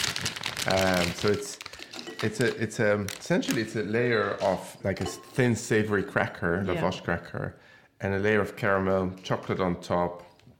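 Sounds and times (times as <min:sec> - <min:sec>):
cellophane wrapper crinkling as salt caramel brittle is unwrapped: 0:00.0 - 0:04.6
speech: 0:00.6 - 0:01.6, 0:02.2 - 0:10.3.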